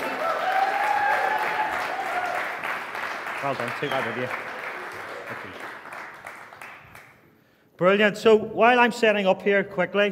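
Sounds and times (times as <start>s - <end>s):
audience clapping: 0.0s - 7.3s
speech: 3.4s - 4.5s, 7.8s - 10.1s.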